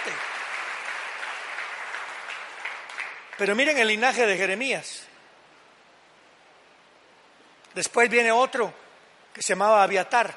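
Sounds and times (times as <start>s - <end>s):
audience applauding: 0.0s - 4.1s
speech: 3.4s - 5.1s, 7.8s - 8.8s, 9.4s - 10.3s.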